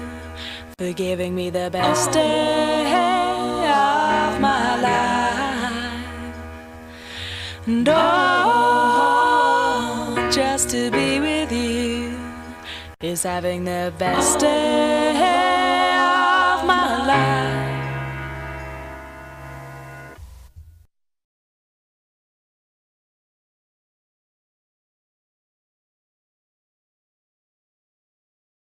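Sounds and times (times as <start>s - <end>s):
a cappella singing in a studio: 0.8s - 6.3s, 7.6s - 18.0s.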